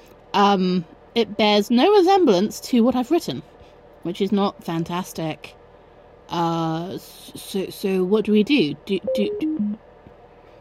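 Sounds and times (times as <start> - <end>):
speech: 0.4 - 5.6, 6.3 - 9.8
Bluetooth speaker low-pitched electronic beep: 9.1 - 9.8.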